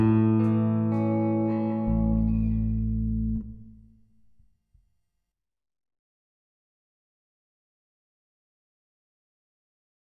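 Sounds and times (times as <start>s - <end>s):
guitar chord melody in D: 0.0s - 3.9s.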